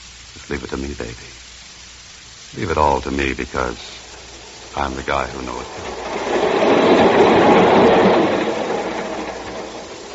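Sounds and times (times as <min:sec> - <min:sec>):
speech: 0:00.4 - 0:01.5, 0:02.5 - 0:04.0, 0:04.8 - 0:07.4
train running on rails: 0:02.6 - 0:10.1.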